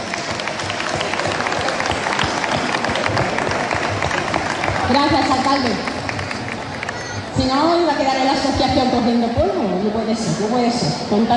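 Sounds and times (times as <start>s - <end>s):
audience applause: 0.0s - 7.3s
speech: 4.9s - 5.9s, 7.4s - 11.3s.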